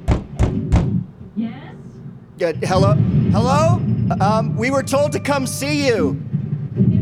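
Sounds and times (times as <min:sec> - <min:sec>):
knocking on a door: 0:00.0 - 0:01.1
voice murmuring: 0:02.4 - 0:06.2
speech: 0:02.4 - 0:06.9.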